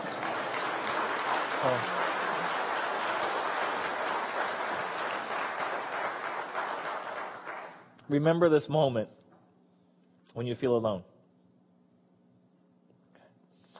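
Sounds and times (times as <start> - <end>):
audience applause: 0.0 - 7.9
speech: 1.6 - 2.0, 8.1 - 9.2, 10.3 - 11.1.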